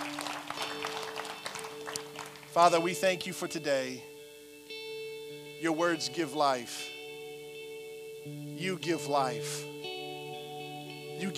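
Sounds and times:
crowd clapping: 0.0s - 3.0s
speech: 2.6s - 4.1s, 5.6s - 6.9s, 8.2s - 9.7s, 11.2s - 11.3s.

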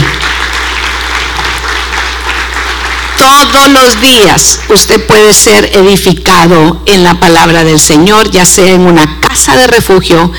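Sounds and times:
audience applauding: 0.0s - 3.8s
speech: 3.2s - 10.3s.

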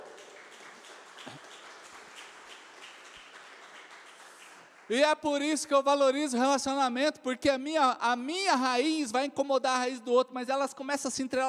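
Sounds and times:
audience applauding: 0.0s - 5.0s
speech: 4.9s - 11.4s.

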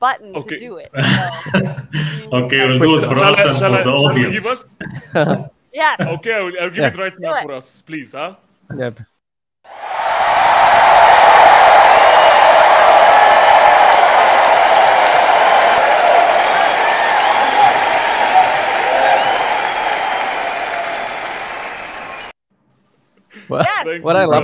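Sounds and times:
speech: 0.0s - 9.1s, 23.5s - 24.4s
laughter: 1.0s - 7.1s
people cheering: 2.0s - 4.5s, 9.7s - 22.3s
audience applause: 9.7s - 22.3s.

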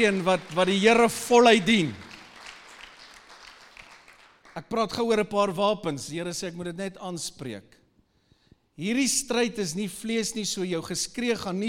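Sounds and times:
speech: 0.0s - 2.0s, 4.6s - 7.8s, 8.8s - 11.6s
audience clapping: 0.0s - 5.0s.

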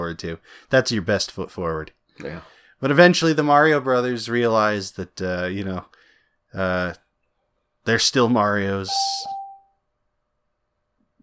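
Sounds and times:
speech: 0.0s - 7.0s, 7.8s - 9.4s
notification chime: 8.9s - 9.7s.

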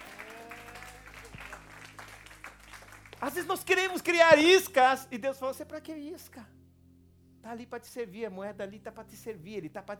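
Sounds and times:
audience applause: 0.0s - 3.4s
speech: 3.2s - 6.6s, 7.5s - 9.9s.

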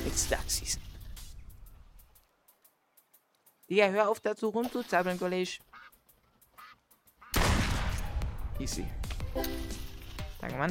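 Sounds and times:
speech: 0.2s - 0.9s, 3.7s - 5.7s, 8.6s - 9.8s, 10.4s - 10.7s
duck quacking in a video game: 5.6s - 7.4s.

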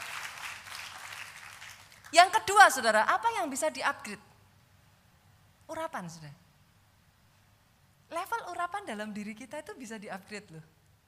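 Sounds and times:
audience applause: 0.0s - 2.1s
speech: 2.1s - 4.3s, 5.7s - 6.4s, 8.1s - 10.7s.

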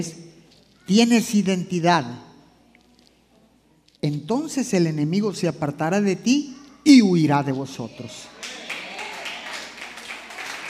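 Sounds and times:
speech: 0.0s - 0.2s, 0.9s - 2.3s, 4.0s - 8.6s
applause: 8.3s - 10.6s.

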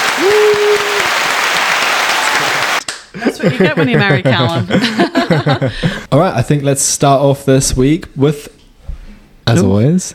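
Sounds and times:
round of applause: 0.0s - 3.1s
laughter: 3.2s - 6.1s
speech: 3.4s - 8.6s, 9.5s - 10.1s.

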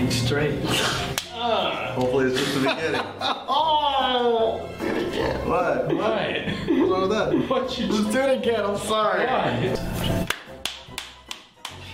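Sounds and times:
speech: 0.3s - 10.3s
laughter: 2.2s - 4.6s, 5.9s - 7.9s
single hand clap: 10.2s - 11.9s.

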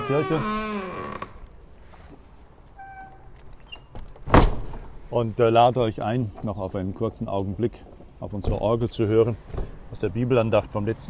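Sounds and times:
old church door lock creaking: 0.0s - 1.6s, 2.8s - 4.5s
speech: 0.1s - 0.6s, 5.1s - 11.0s.

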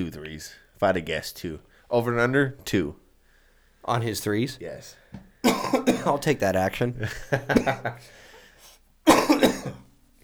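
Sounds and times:
speech: 0.0s - 3.0s, 3.8s - 8.2s
person coughing harshly: 5.4s - 6.3s, 7.4s - 8.1s, 9.1s - 9.8s
laughter: 6.1s - 8.2s.

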